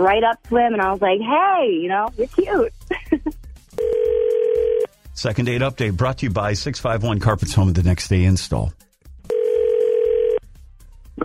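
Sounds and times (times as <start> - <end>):
speech: 0.0 - 2.8, 5.2 - 8.8
telephone line tone, low-pitched electronic beep: 3.8 - 4.9, 9.3 - 10.4.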